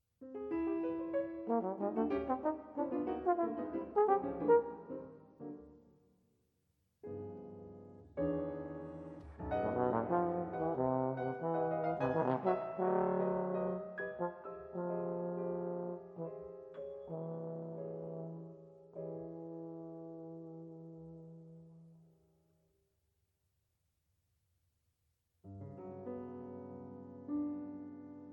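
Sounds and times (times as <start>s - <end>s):
piano: 0.0s - 6.1s, 7.0s - 22.7s, 25.4s - 28.3s
clarinet: 1.3s - 5.6s, 9.5s - 22.2s.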